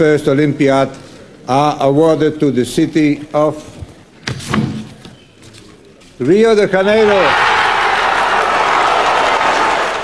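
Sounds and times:
speech: 0.0 - 4.6, 6.2 - 7.4
Brazilian delegation in Copenhagen cheering as Rio de Janeiro is awarded the 2016 Olympics: 7.0 - 10.0.

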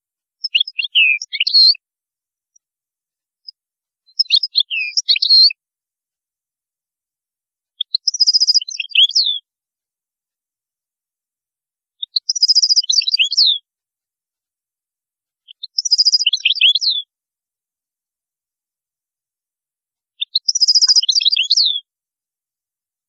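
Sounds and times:
European goldfinch song: 0.3 - 1.8, 3.4 - 5.6, 7.7 - 9.5, 12.0 - 13.6, 15.4 - 17.1, 20.1 - 21.9.

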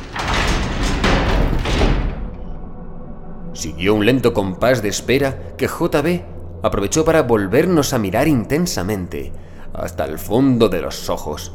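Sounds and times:
heavy gas chamber door slamming shut: 0.0 - 2.6
speech: 3.6 - 11.5.

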